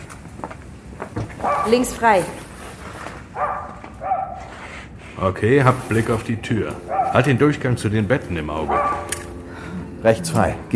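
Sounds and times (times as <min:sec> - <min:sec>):
dog barking: 0:01.4 - 0:02.0, 0:03.4 - 0:04.7, 0:06.8 - 0:07.4, 0:08.7 - 0:09.3
speech: 0:01.6 - 0:02.4, 0:05.2 - 0:08.8, 0:10.0 - 0:10.7.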